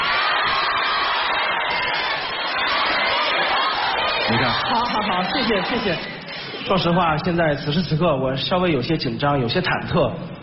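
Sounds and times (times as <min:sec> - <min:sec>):
crowd applauding: 0:00.0 - 0:07.0
cheering: 0:00.0 - 0:07.3
speech: 0:04.3 - 0:10.4.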